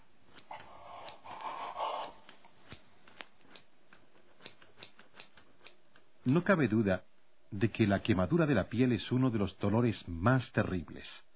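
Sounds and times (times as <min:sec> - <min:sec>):
scissors cutting through cloth covering a burn: 0:02.2 - 0:05.8
speech: 0:06.3 - 0:11.3.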